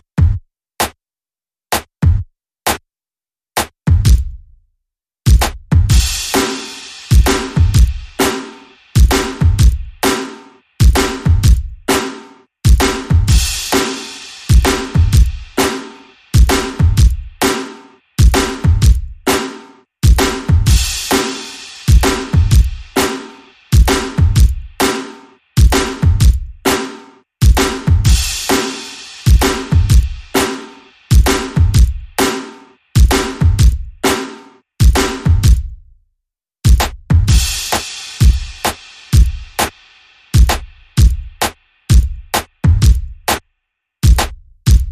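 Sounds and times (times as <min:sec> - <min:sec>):
drums: 0:00.2 - 0:00.4, 0:02.0 - 0:02.2, 0:03.6 - 0:04.4, 0:05.3 - 0:35.8, 0:36.7 - 0:43.4, 0:44.0 - 0:44.8.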